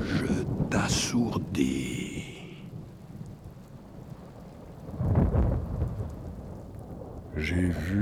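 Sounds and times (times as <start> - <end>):
rain-like hiss: 0.0 - 7.9
thunder clap during a storm: 0.0 - 7.9
speech: 0.8 - 2.4, 7.4 - 7.9.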